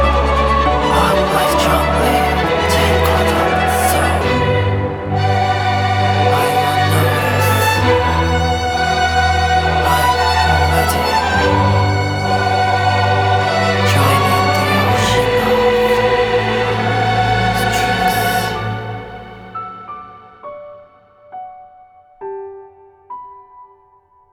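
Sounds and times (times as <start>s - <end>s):
strings: 0.0s - 20.5s.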